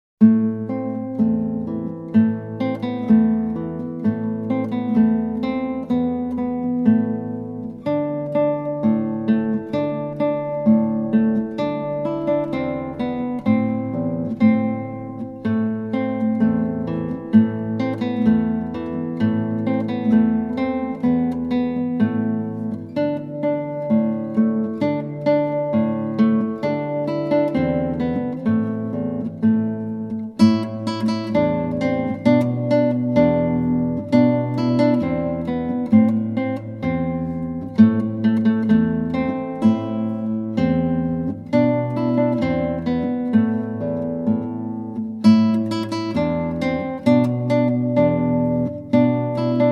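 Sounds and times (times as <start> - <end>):
guitar piece: 0.2 - 49.7.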